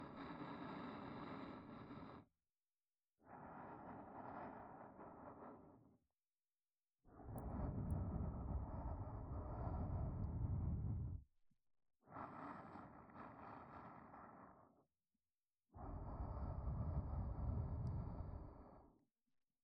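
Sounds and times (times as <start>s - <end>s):
soft breathing loop in the right ear: 0.0s - 2.3s, 3.2s - 6.0s, 7.1s - 11.2s, 12.1s - 14.8s, 15.8s - 18.9s.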